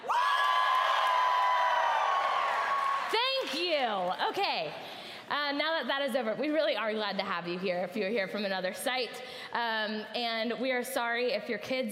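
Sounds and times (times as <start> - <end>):
audience cheering loudly: 0.0 - 3.3
speech: 3.5 - 11.9.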